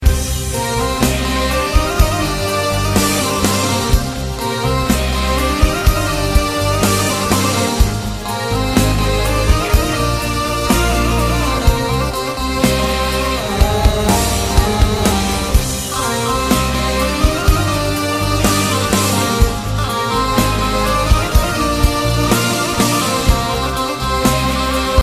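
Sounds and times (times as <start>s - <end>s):
Greek oriental music: 0.0s - 25.0s.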